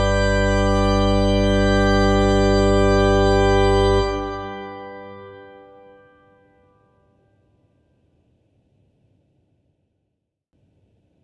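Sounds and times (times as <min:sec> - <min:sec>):
organ playing: 0:00.0 - 0:06.5.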